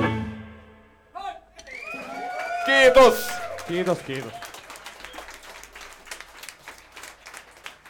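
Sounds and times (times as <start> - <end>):
applause: 1.7 - 7.8
speech: 2.7 - 4.4.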